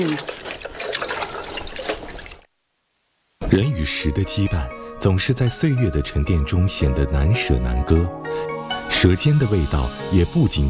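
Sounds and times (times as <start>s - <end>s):
washing dishes with running water: 0.0s - 2.5s
speech: 3.5s - 10.6s.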